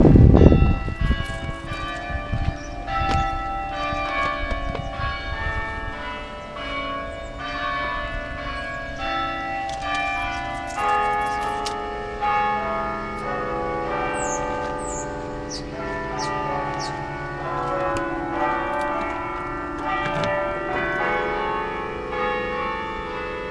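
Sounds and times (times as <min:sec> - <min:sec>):
cathedral bells ringing: 0:00.0 - 0:23.4.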